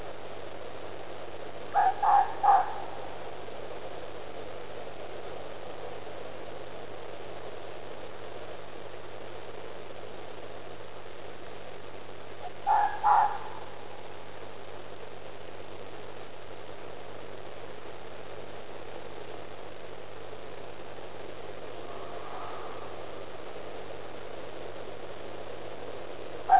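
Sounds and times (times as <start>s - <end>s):
fox mating call: 1.7s - 3.2s, 12.4s - 13.8s.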